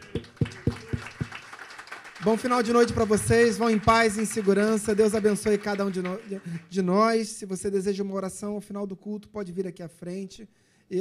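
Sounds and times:
applause: 0.0 - 6.9
speech: 2.3 - 10.9.

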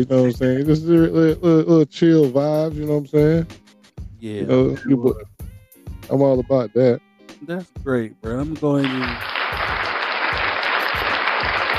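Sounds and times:
speech: 0.0 - 3.6, 4.2 - 5.3, 6.1 - 9.3
audience applause: 8.8 - 11.7.

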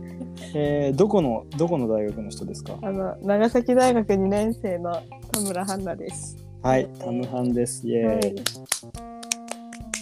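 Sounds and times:
speech: 0.5 - 9.1
hand clapping: 7.2 - 10.0.

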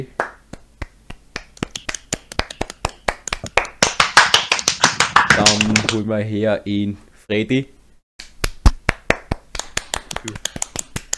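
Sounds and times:
speech: 0.0 - 0.2, 5.9 - 7.8
audience clapping in a steady rhythmic beat: 0.0 - 6.0, 8.2 - 11.1.

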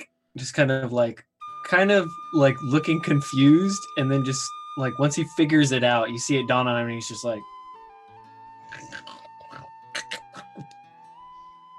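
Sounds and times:
speech: 0.4 - 7.5
voice mimicking creature growls and grunts: 8.6 - 10.7.

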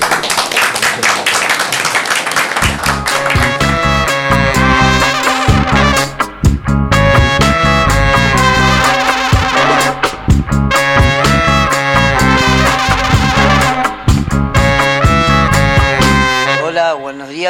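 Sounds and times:
small group hand clapping: 0.0 - 3.9
bright musical jingle with heavy bass: 2.6 - 16.4.

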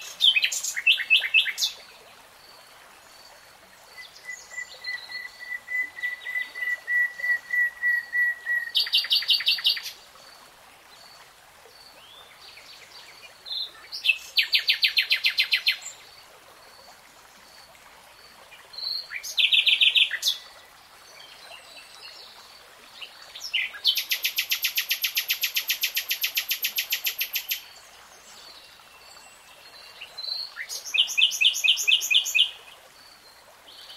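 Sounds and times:
nightingale song: 0.0 - 1.8, 3.9 - 10.0, 12.0 - 16.1, 18.5 - 22.3, 23.0 - 33.9.

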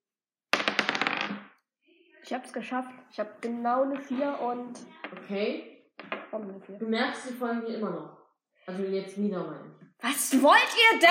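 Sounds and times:
dice rolling: 0.5 - 1.6, 6.0 - 6.3
speech: 2.3 - 5.7, 6.3 - 11.0.

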